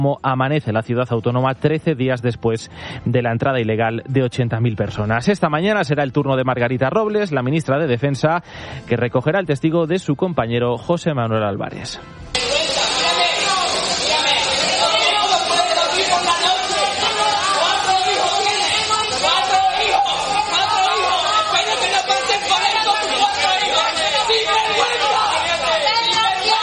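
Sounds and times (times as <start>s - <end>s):
speech: 0.0s - 12.4s
crowd shouting and booing: 12.3s - 26.6s.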